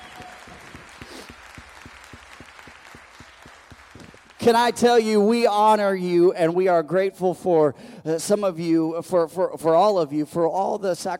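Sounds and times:
audience applause: 0.0 - 4.8
speech: 4.4 - 11.1.

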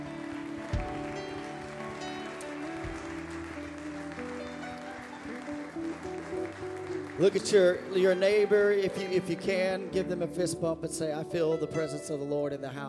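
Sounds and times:
audience hand clapping: 0.0 - 10.0
speech: 7.2 - 12.8.

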